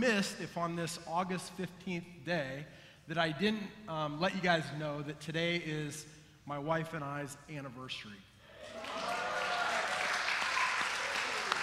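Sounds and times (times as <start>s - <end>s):
speech: 0.0s - 8.9s
crowd clapping: 8.6s - 11.6s.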